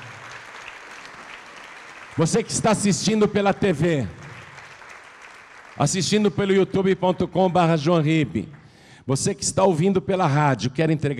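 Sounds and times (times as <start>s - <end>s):
audience applauding: 0.0s - 6.9s
speech: 2.2s - 4.2s, 5.8s - 11.1s.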